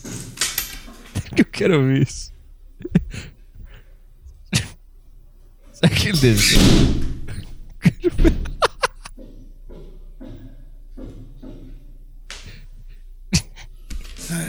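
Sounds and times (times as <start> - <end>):
speech: 1.3 - 2.3, 5.8 - 7.1
window slammed shut forcefully: 6.2 - 7.4
laughter: 7.3 - 9.6.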